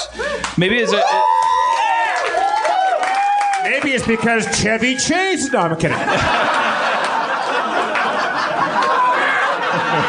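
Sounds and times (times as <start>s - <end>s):
speech: 0.1s - 1.4s, 3.6s - 6.9s, 9.8s - 10.0s
live audience cheering and whooping: 0.2s - 10.0s
laughter: 5.6s - 10.0s.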